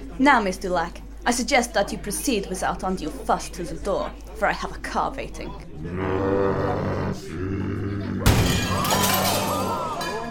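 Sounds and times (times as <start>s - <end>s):
speech: 0.2s - 7.3s
window glass shattering: 8.3s - 10.2s.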